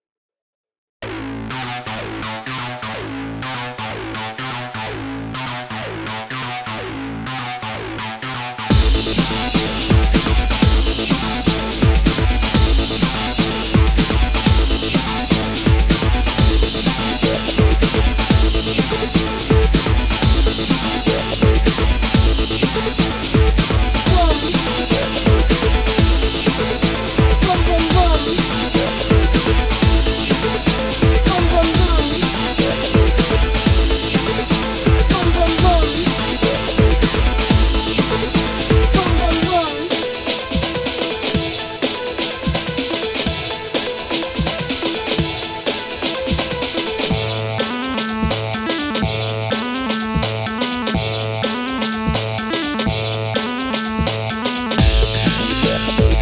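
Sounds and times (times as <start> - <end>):
breakbeat drums: 8.7 - 56.2.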